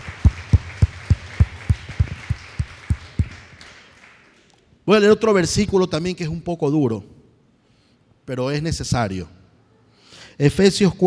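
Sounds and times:
church congregation clapping in a steady rhythmic beat: 0.0s - 4.7s
speech: 4.9s - 7.2s, 8.3s - 9.4s, 10.4s - 11.0s.

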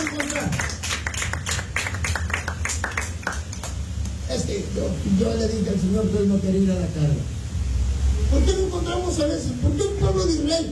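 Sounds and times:
crowd clapping loudly in a steady fast rhythm: 0.0s - 4.2s
speech: 4.6s - 7.4s, 8.3s - 10.6s.

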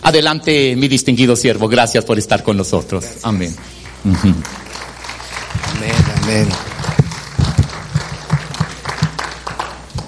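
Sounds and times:
speech: 0.1s - 4.7s, 5.8s - 6.7s
audience applauding: 3.1s - 10.0s.

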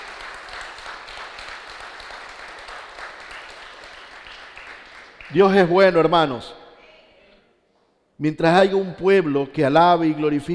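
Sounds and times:
audience applauding: 0.0s - 6.0s
speech: 5.3s - 6.6s, 8.2s - 10.5s.

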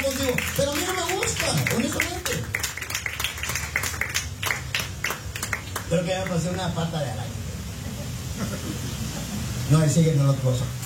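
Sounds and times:
church congregation clapping in praise: 0.0s - 6.7s
speech: 0.3s - 0.9s, 1.5s - 2.2s, 5.9s - 7.4s, 8.4s - 10.8s.

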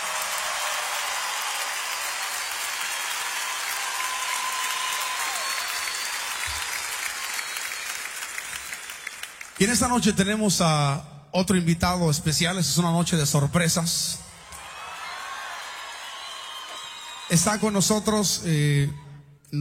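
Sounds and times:
audience applause: 0.0s - 10.0s, 14.4s - 18.1s
speech: 9.6s - 14.3s, 17.3s - 19.5s.

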